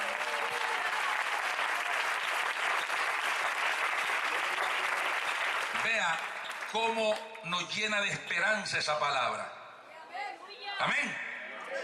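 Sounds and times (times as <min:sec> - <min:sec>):
audience applause: 0:00.0 - 0:07.3
speech: 0:05.8 - 0:09.6, 0:10.8 - 0:11.2.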